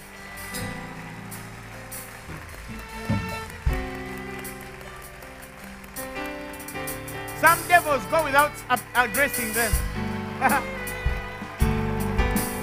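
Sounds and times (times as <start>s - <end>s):
audience clapping in praise: 0.0s - 12.6s
loud thumps: 2.3s - 3.9s
speech: 7.4s - 10.8s.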